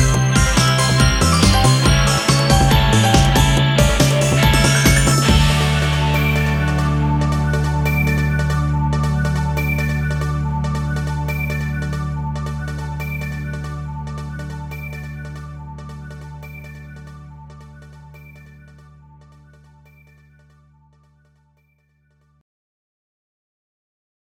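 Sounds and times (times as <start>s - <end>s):
karaoke version backing track: 0.0s - 12.0s.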